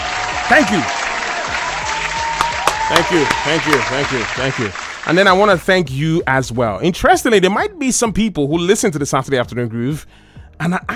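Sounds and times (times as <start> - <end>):
round of applause: 0.0 - 5.4
speech: 0.5 - 1.0, 2.9 - 10.9.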